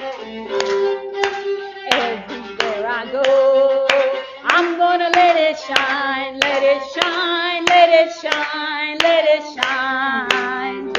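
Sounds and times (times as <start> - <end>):
group hand clapping: 0.0 - 10.9.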